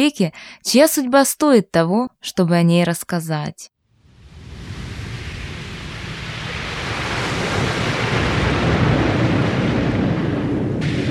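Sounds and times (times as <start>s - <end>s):
speech: 0.0s - 3.7s
stormy sea waves: 3.9s - 11.0s
rolling thunder: 4.0s - 11.0s.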